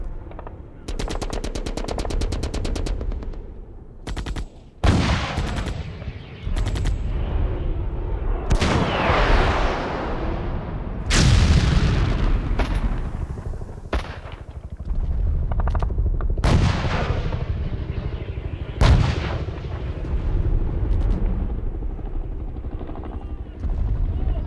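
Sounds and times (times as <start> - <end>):
modern military battle: 0.0 - 24.4.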